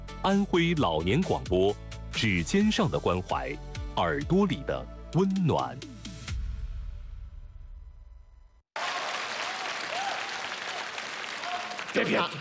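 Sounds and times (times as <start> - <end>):
speech: 0.2 - 5.9, 12.0 - 12.4
audience applause: 8.8 - 12.4.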